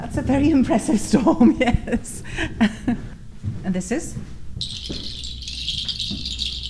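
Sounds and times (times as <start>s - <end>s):
speech: 0.2s - 3.1s, 3.7s - 4.3s
birds singing: 4.6s - 6.6s.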